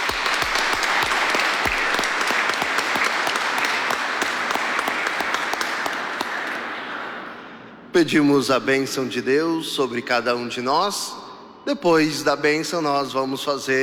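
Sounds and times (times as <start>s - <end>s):
audience applause: 0.0s - 7.3s
speech: 8.0s - 13.8s.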